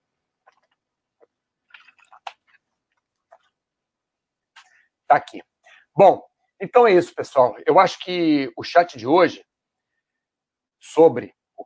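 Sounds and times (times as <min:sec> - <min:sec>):
person drinking sips of water: 0:00.5 - 0:03.6
speech: 0:05.1 - 0:09.5, 0:10.8 - 0:11.4.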